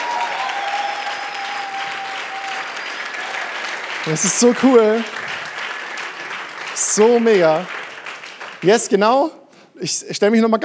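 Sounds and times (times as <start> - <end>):
whistles: 0.0 - 3.8
large crowd applauding: 0.0 - 9.0
speech: 4.0 - 5.2, 7.0 - 7.8, 8.6 - 10.6.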